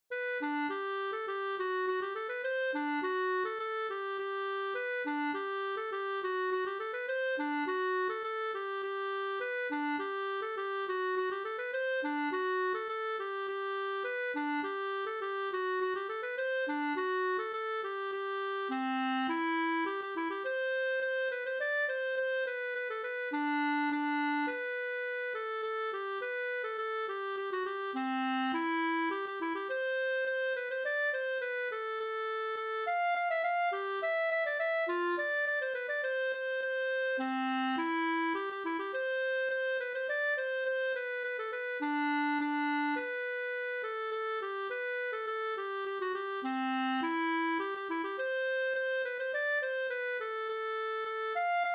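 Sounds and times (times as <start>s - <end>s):
polka music: 0.1s - 51.7s.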